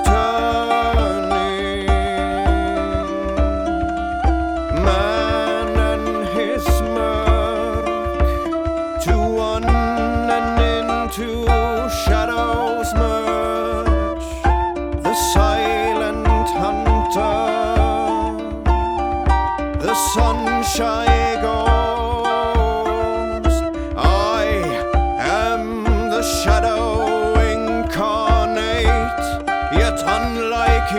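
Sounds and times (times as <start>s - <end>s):
drum: 0.0s - 30.9s
flute: 0.0s - 30.9s
kitara: 0.0s - 30.9s
singing voice: 0.0s - 30.9s.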